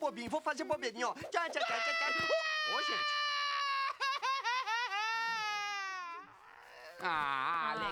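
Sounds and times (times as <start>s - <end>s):
speech: 0.1s - 3.3s, 7.0s - 7.9s
cartoon baby crying: 1.6s - 6.3s.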